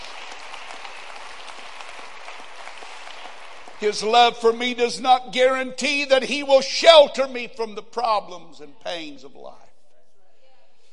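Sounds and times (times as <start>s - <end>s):
audience clapping: 0.0s - 4.5s
speech: 3.8s - 9.6s.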